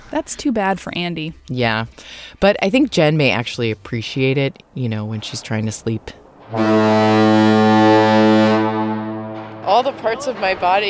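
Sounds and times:
speech: 0.1s - 7.8s, 9.7s - 10.8s
ship foghorn blast: 6.5s - 9.9s.

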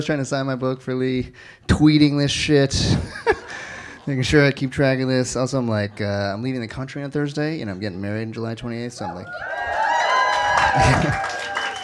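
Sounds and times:
speech: 0.0s - 9.7s, 10.7s - 11.4s
laughter: 2.9s - 4.5s, 10.4s - 11.7s
cheering voices and whoops: 9.2s - 11.8s
audience applause: 9.3s - 11.8s.

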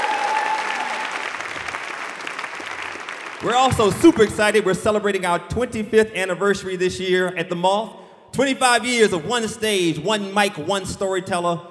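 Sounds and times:
audience round of applause: 0.0s - 4.2s
speech: 3.4s - 11.7s.

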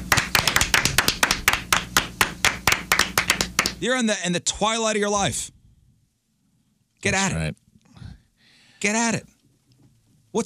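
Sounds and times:
hand clapping: 0.0s - 3.8s
speech: 3.8s - 5.6s, 7.0s - 7.6s, 8.8s - 9.3s.

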